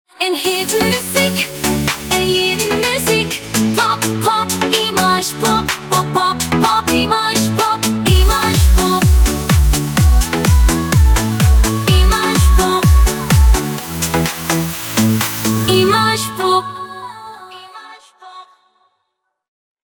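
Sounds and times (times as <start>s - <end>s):
pop music: 0.2s - 18.6s.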